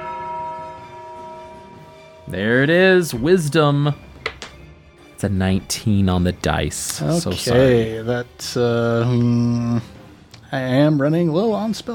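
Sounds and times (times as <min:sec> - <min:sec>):
tolling bell sound effect: 0:00.0 - 0:03.8
speech: 0:02.3 - 0:04.1, 0:05.2 - 0:09.9, 0:10.5 - 0:11.9.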